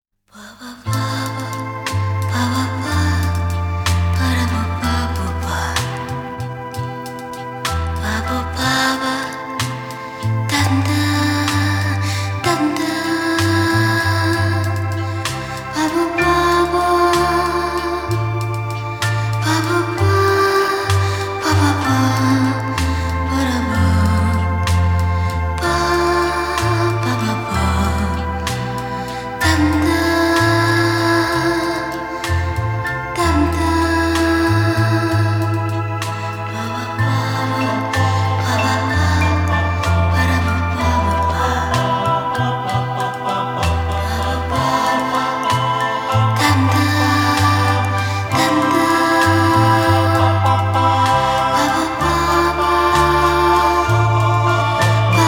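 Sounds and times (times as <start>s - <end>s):
singing guitars vocalise nocturne: 0.9s - 55.2s.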